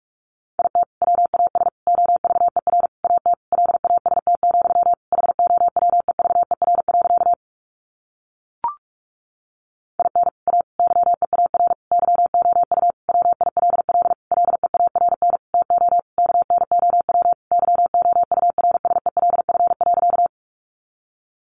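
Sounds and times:
Morse code beeps at 45wpm: 0.6s - 7.4s, 10.0s - 20.3s.

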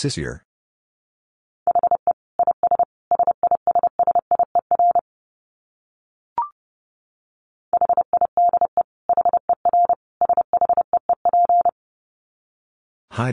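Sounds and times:
speech: 0.0s - 0.4s, 13.2s - 13.3s
fast Morse code tones at 30 wpm: 1.7s - 5.0s, 7.8s - 11.7s.

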